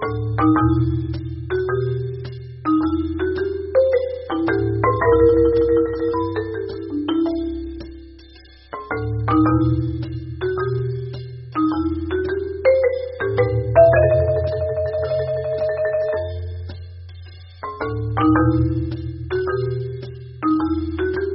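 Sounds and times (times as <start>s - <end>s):
marimba: 0.0s - 21.3s.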